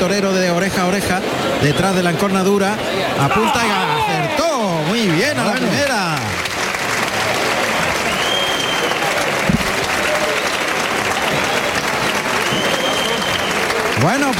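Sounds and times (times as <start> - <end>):
speech: 0.0 - 6.4, 14.0 - 14.3
bullfight crowd applauding bullfighter Finito de Córdoba: 3.2 - 14.3.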